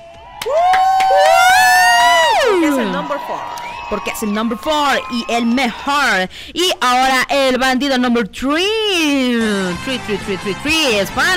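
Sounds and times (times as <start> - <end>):
noisy applause and cheering: 0.0 - 6.0
speech: 3.2 - 11.3.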